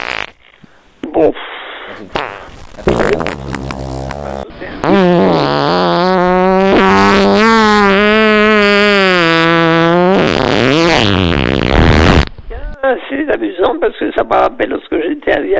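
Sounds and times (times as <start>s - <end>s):
long buzzing fart: 0.0s - 0.6s, 2.1s - 12.3s
speech: 1.2s - 3.6s, 13.3s - 15.5s.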